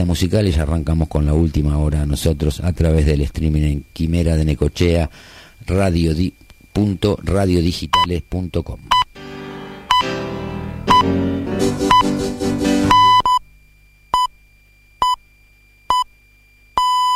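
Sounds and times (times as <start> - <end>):
speech: 0.0 - 9.0
radio hourly time signal beeps: 7.8 - 8.3, 8.9 - 12.2, 12.8 - 13.4, 14.1 - 14.4, 15.0 - 15.2, 15.9 - 16.2, 16.8 - 17.1.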